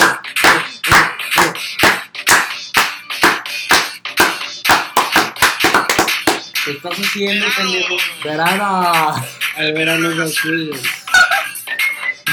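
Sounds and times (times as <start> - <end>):
rhythmic hand clapping: 0.0 - 6.6
speech: 6.7 - 11.0.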